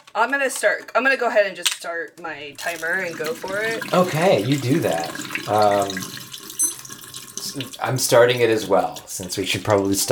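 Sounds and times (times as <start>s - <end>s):
speech: 0.2s - 6.2s, 7.6s - 10.0s
water running for pre-soaking film tank: 2.4s - 10.0s.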